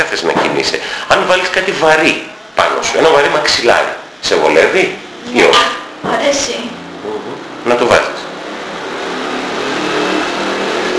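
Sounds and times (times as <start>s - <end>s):
speech: 0.1s - 8.2s
motorbike passing outside: 5.0s - 10.9s.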